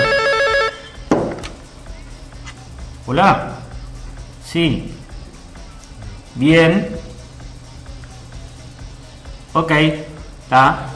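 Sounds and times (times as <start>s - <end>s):
telephone ringing: 0.0s - 1.0s
speech: 3.1s - 3.6s, 4.5s - 5.0s, 6.4s - 7.0s, 9.6s - 10.9s.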